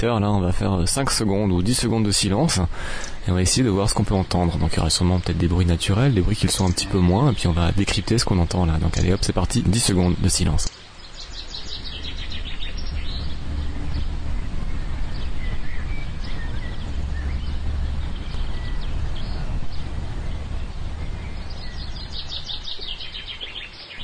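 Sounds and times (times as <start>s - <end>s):
speech: 0.0s - 10.8s
trucks in the street: 11.5s - 23.4s.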